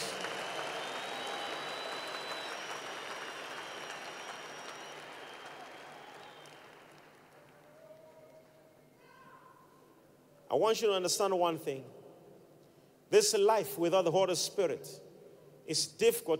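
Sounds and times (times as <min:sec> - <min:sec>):
audience clapping hands: 0:00.0 - 0:08.8
speech: 0:10.5 - 0:12.0, 0:13.1 - 0:15.1, 0:15.7 - 0:16.3.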